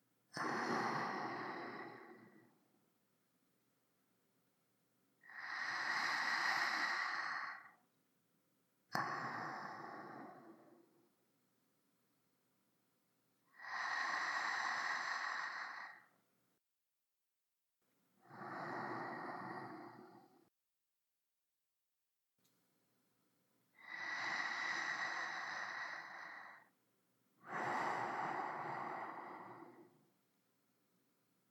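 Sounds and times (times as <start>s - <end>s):
sleeping breath: 0.4s - 2.6s, 5.2s - 7.8s, 8.9s - 11.1s, 13.5s - 16.2s, 18.2s - 20.5s, 23.8s - 26.7s, 27.4s - 30.2s.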